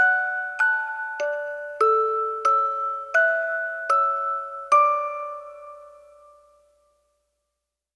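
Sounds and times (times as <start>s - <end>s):
music box melody: 0.0s - 6.4s.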